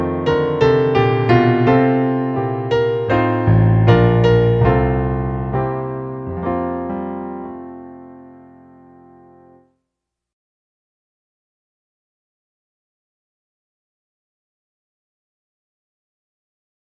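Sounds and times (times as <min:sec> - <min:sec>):
patriotic song on piano: 0:00.0 - 0:09.6.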